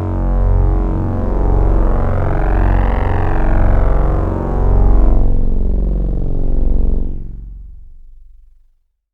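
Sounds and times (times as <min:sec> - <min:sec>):
Yamaha PSR-28 keyboard FM synth sounds: 0:00.2 - 0:07.3.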